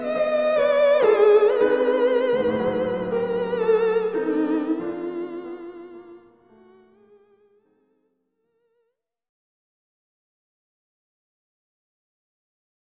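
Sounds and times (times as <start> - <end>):
theremin: 0.0 - 7.2.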